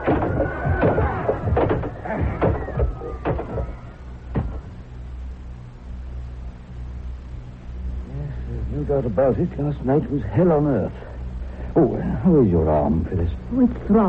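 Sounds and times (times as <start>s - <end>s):
locked door battered open with a chair: 0.0s - 3.8s
low rumbling hush: 0.0s - 14.0s
speech: 9.1s - 11.1s, 11.8s - 14.0s.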